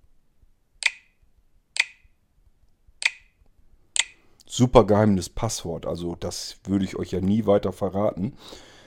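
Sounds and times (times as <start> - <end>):
keyboard typing clicks on touchscreen: 0.8 - 1.2, 1.8 - 2.0, 3.0 - 3.4, 4.0 - 4.2
speech: 4.6 - 8.7.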